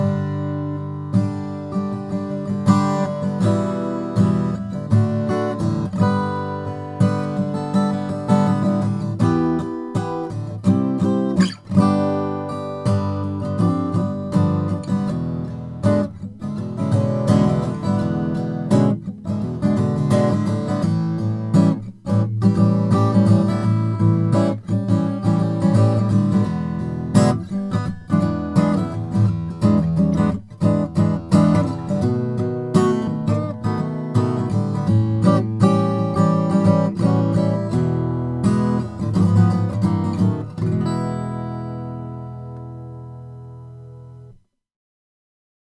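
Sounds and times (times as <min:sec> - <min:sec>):
macassar guitar playing: 0:00.0 - 0:44.3.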